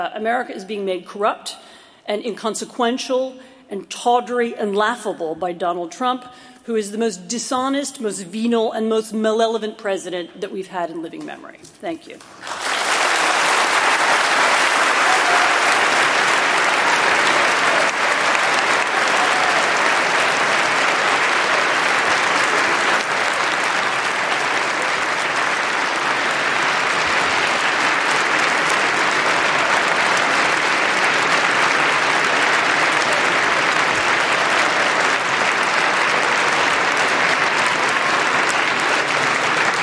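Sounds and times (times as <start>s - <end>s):
speech: 0.0s - 12.5s
audience applause, standing ovation: 12.3s - 39.8s.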